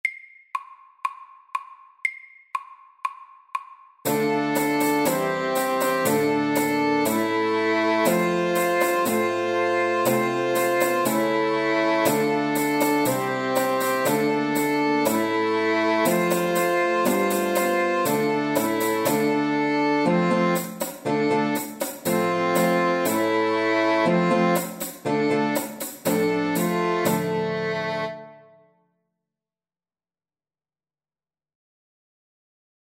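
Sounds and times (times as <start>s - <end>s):
Old English dance music: 4.1s - 28.1s.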